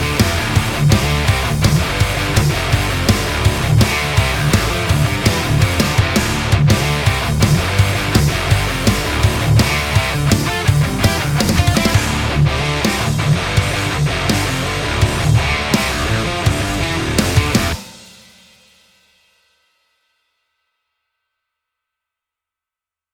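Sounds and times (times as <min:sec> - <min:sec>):
metal music: 0:00.0 - 0:18.0.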